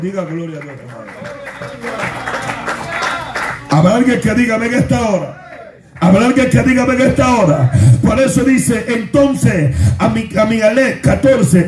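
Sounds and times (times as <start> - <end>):
speech: 0.0 - 2.5, 3.7 - 5.4, 6.0 - 11.6
audience clapping hands: 0.0 - 4.1.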